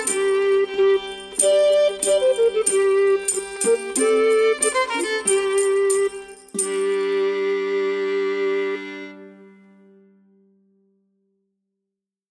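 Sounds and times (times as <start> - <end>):
medieval court music: 0.0 - 9.6.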